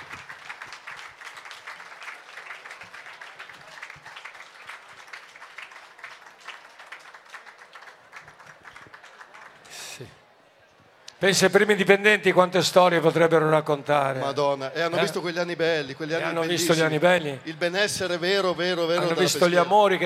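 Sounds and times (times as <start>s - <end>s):
crowd applause: 0.0s - 10.3s
speech: 10.0s - 10.2s, 11.2s - 20.0s.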